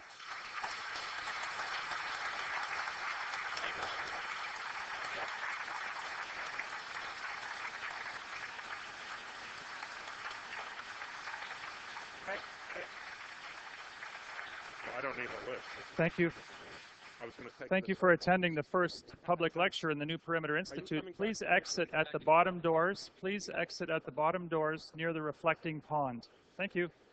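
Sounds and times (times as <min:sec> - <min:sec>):
audience applause: 0:00.0 - 0:17.6
speech: 0:15.2 - 0:16.6, 0:17.3 - 0:27.0.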